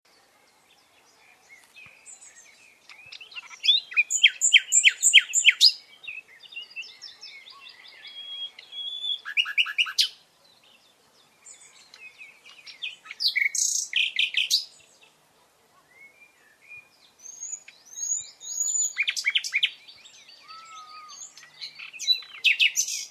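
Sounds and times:
common nightingale song, Luscinia megarhynchos: 0:00.1 - 0:15.2, 0:16.2 - 0:23.1.

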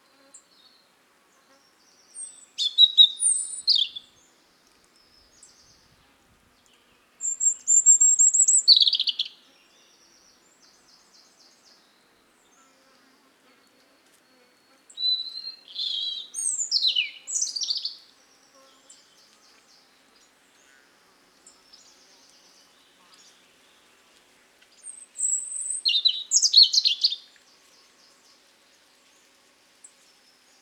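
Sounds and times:
European robin singing: 0:01.9 - 0:04.2, 0:07.2 - 0:11.8, 0:14.9 - 0:18.0, 0:24.8 - 0:27.3.

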